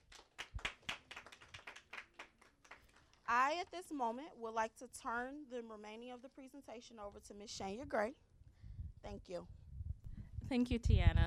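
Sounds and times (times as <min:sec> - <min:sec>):
audience applause: 0:00.0 - 0:03.2
speech: 0:03.3 - 0:08.3, 0:09.0 - 0:09.6, 0:10.5 - 0:11.2.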